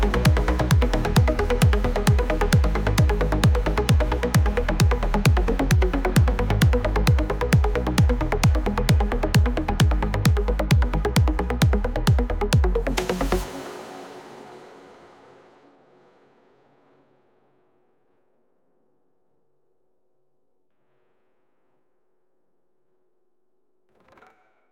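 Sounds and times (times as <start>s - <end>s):
techno music: 0.0s - 16.2s.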